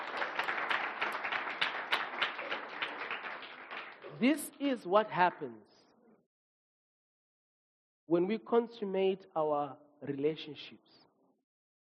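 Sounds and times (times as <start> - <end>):
audience clapping hands: 0.0 - 4.6
speech: 4.2 - 5.7, 8.1 - 11.0.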